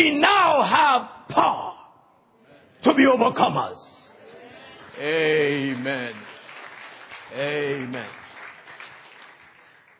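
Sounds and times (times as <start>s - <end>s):
speech: 0.0s - 1.6s, 2.8s - 3.9s, 5.0s - 6.3s, 7.3s - 8.2s
audience clapping: 4.7s - 9.9s.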